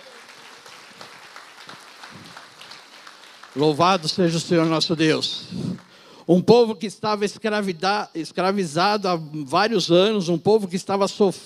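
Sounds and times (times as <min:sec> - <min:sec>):
audience applause: 0:00.0 - 0:06.0
speech: 0:03.6 - 0:11.4.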